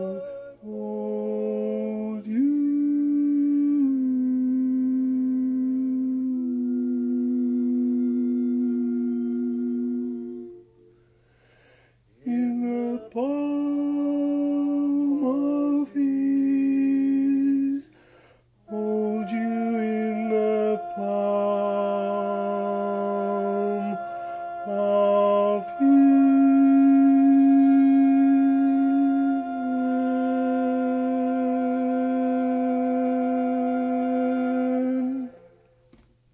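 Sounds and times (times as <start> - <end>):
baritone singing: 0.0 - 10.8, 12.2 - 18.0, 18.6 - 35.7.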